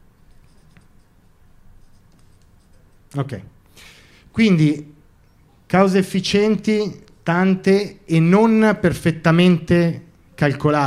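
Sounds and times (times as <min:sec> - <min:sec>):
pen scratching on paper writing notes by hand: 0:00.3 - 0:01.1, 0:01.8 - 0:03.1
speech: 0:03.1 - 0:04.9, 0:05.7 - 0:10.8.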